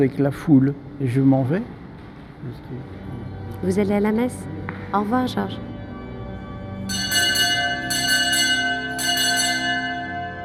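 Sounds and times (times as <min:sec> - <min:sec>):
speech: 0:00.0 - 0:01.8, 0:02.4 - 0:03.0, 0:03.6 - 0:05.7
church bells ringing for evening mass: 0:06.7 - 0:10.4.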